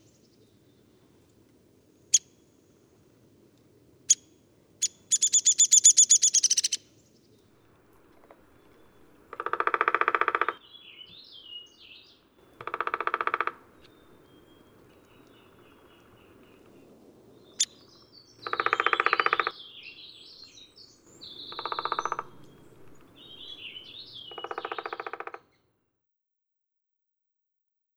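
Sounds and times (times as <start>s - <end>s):
downy woodpecker: 4.8s - 6.8s, 8.2s - 11.2s, 12.5s - 16.7s, 18.4s - 19.7s, 21.2s - 25.6s.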